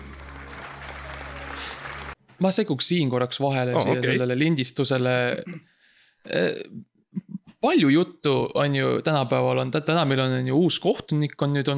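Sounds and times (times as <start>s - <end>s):
audience applause: 0.0s - 2.2s
speech: 2.4s - 6.9s, 7.6s - 11.7s.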